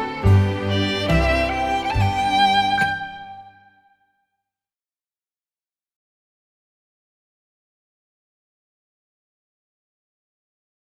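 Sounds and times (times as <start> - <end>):
recorder playing a folk tune: 0.0 - 3.9.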